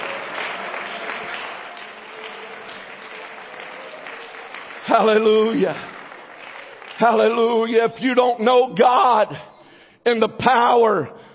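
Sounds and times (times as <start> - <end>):
audience clapping hands: 0.0 - 8.4
speech: 4.9 - 5.9, 7.0 - 11.2.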